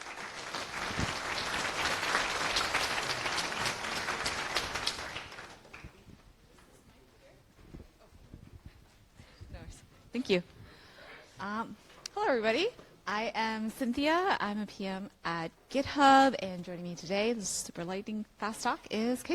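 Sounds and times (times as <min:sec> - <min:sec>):
audience applause: 0:00.0 - 0:06.0
speech: 0:10.2 - 0:10.5, 0:11.4 - 0:19.3.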